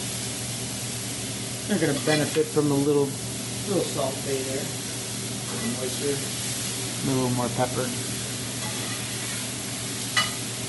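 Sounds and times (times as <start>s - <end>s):
vegetables sizzling in a hot pan: 0.0s - 10.6s
speech: 1.7s - 4.8s, 5.6s - 6.4s, 7.0s - 8.1s
scrape of vegetables being stirred in pan: 8.6s - 9.5s.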